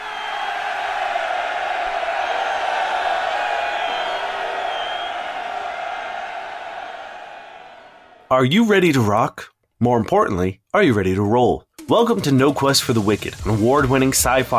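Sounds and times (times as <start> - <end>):
large crowd cheering wildly: 0.0 - 8.3
speech: 8.3 - 14.5.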